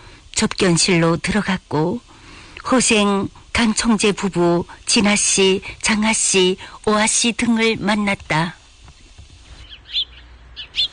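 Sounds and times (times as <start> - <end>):
speech: 0.4 - 8.6
birdsong outside a temple: 8.9 - 10.9
soft bird twittering: 9.0 - 10.9.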